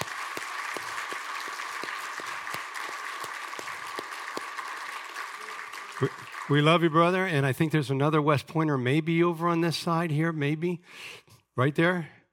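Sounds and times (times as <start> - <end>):
audience applause: 0.0 - 7.3
speech: 6.0 - 12.2.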